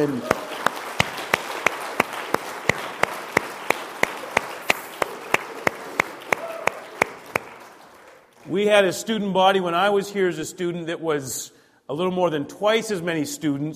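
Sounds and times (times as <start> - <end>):
speech: 0.0 - 0.4, 8.5 - 13.7
audience applause at a weekend retreat: 0.0 - 8.5.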